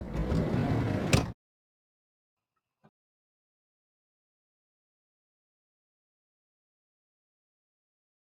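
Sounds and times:
car door opening: 0.3 - 1.4.

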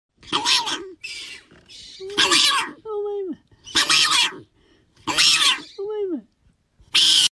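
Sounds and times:
hyrax screaming: 0.2 - 2.8, 3.7 - 4.4, 5.0 - 5.7, 6.9 - 7.3.

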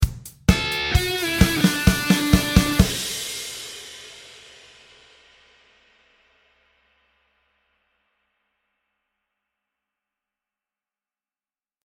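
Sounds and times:
small guitar riff: 0.5 - 3.2.

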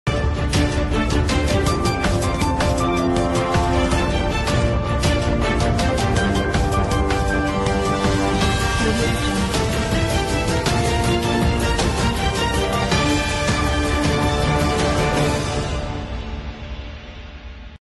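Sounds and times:
news intro music: 0.1 - 17.8.

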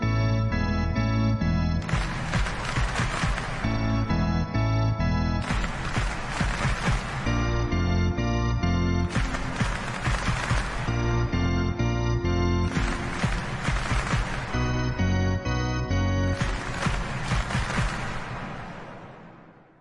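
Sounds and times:
piano: 0.0 - 18.8.

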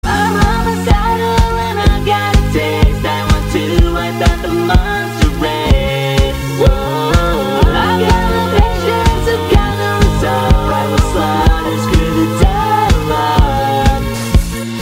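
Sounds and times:
chorus singing: 0.0 - 14.8.

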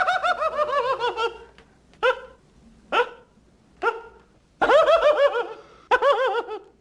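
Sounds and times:
person laughing: 0.0 - 1.6, 4.6 - 6.7.

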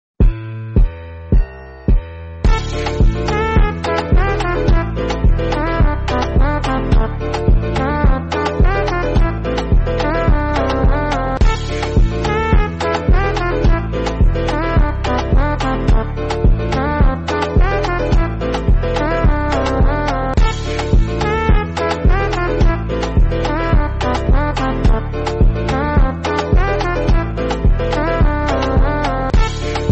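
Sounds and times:
dance music, extra long: 0.2 - 29.9.

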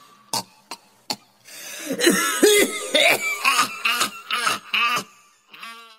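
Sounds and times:
person laughing: 1.9 - 5.9.

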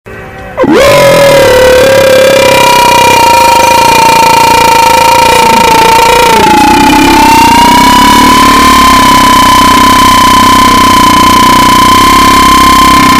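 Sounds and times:
roaring growl: 0.6 - 13.1.

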